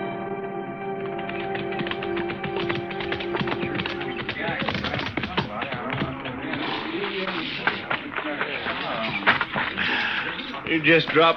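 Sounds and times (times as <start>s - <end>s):
horse hooves clip-clopping: 1.0s - 11.3s.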